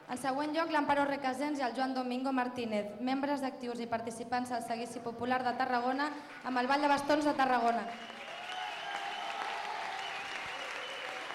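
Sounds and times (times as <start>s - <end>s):
speech: 0.1s - 8.1s
audience applause: 7.8s - 11.3s.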